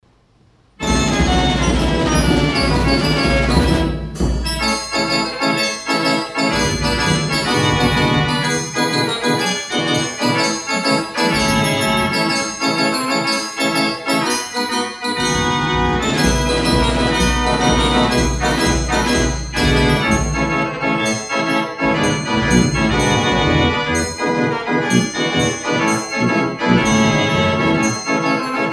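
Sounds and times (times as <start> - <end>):
band organ music: 0.8 - 28.7.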